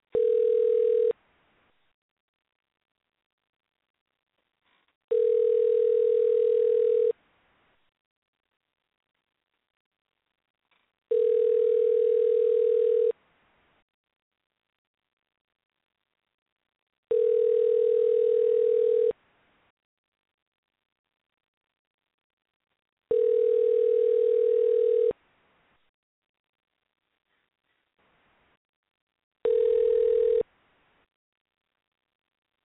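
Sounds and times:
telephone ringing tones while a call goes through: 0:00.2 - 0:01.2, 0:05.1 - 0:07.2, 0:11.1 - 0:13.2, 0:17.1 - 0:19.2, 0:23.1 - 0:25.2, 0:29.5 - 0:30.5.

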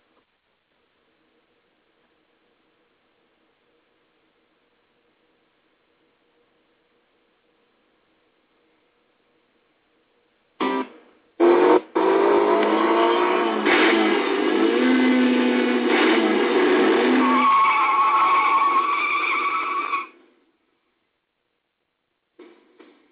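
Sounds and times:
car driving fast through curves: 0:10.6 - 0:17.7
tires skidding: 0:10.6 - 0:20.2.

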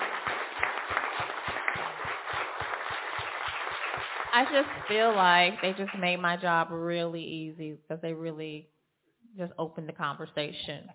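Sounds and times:
audience applause: 0:00.0 - 0:06.1
speech: 0:04.4 - 0:08.7, 0:09.4 - 0:10.9.

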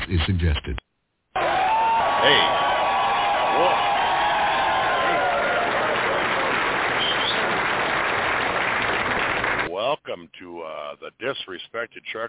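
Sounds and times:
speech: 0:00.1 - 0:00.8, 0:11.8 - 0:12.2
canned studio audience applause and cheering sound effect: 0:01.4 - 0:09.7.

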